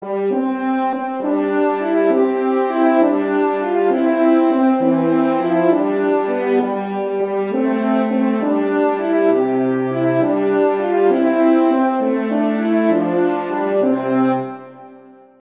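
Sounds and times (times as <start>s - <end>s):
Christmas horn duets: 0.0s - 15.1s.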